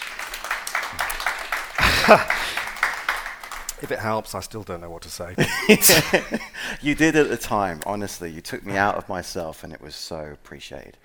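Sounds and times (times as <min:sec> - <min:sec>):
audience applause: 0:00.0 - 0:03.8
laughter: 0:01.8 - 0:02.8, 0:05.4 - 0:06.8
speech: 0:02.1 - 0:02.5, 0:03.8 - 0:11.0.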